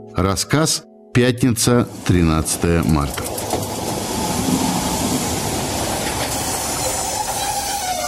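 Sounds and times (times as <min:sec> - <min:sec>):
speech: 0:00.1 - 0:03.6
train rolling along railway tracks: 0:01.9 - 0:08.0.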